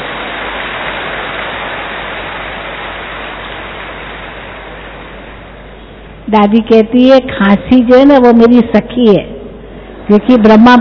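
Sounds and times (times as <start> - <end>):
audience clapping: 0.0 - 5.4
speech: 6.3 - 9.3, 10.1 - 10.7.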